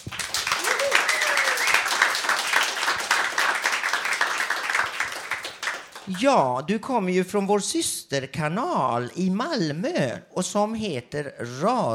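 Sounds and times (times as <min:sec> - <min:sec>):
audience applause: 0:00.0 - 0:06.3
speech: 0:06.1 - 0:11.9.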